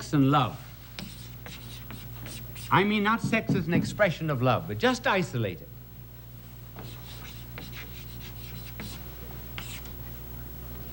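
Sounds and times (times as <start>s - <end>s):
speech: 0.0s - 0.6s, 2.7s - 5.7s
steady hum: 0.0s - 10.9s
marker drawing a circle on a board: 1.0s - 2.9s, 6.8s - 10.0s.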